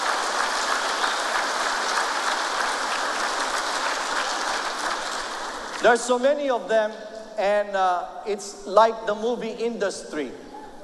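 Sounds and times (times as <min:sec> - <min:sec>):
audience applause in church: 0:00.0 - 0:05.9
speech: 0:05.8 - 0:10.4.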